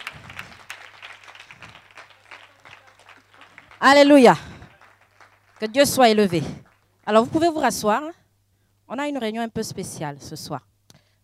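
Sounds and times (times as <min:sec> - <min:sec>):
congregation clapping faintly in church: 0:00.0 - 0:07.5
low hum: 0:00.0 - 0:11.2
speech: 0:03.8 - 0:04.5, 0:05.6 - 0:08.2, 0:08.9 - 0:10.7.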